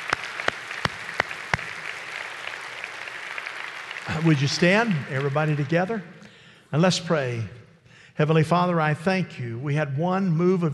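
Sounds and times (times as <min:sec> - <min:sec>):
audience clapping: 0:00.0 - 0:06.3
speech: 0:04.1 - 0:07.6, 0:08.2 - 0:10.7.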